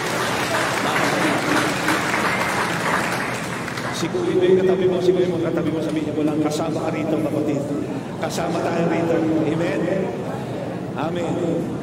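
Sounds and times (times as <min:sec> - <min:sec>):
church congregation applauding during a sermon: 0:00.0 - 0:04.7
speech: 0:04.0 - 0:10.4, 0:11.0 - 0:11.8.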